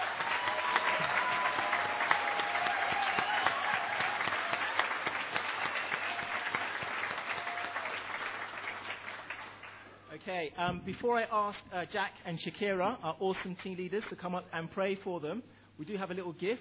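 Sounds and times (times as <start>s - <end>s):
audience applause: 0.0s - 10.1s
speech: 10.3s - 16.5s.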